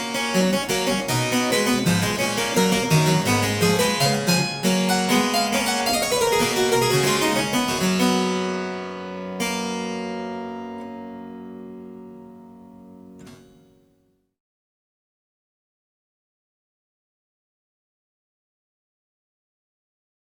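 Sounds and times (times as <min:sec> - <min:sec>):
prelude and fugue in G major: 0:00.0 - 0:13.5.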